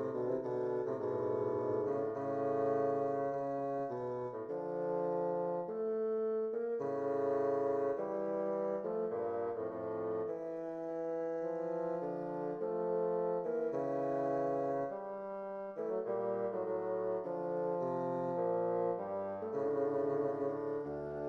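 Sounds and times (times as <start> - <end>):
bassoon duet: 0.0 - 21.2.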